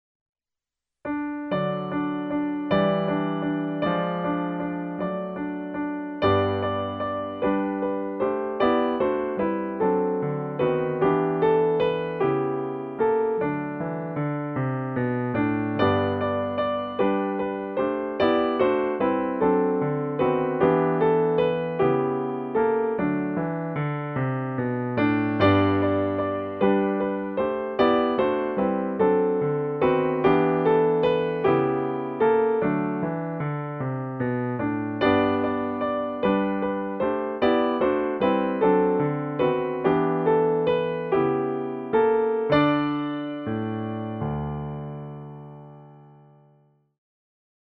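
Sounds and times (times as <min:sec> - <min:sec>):
piano music: 0:01.0 - 0:46.7.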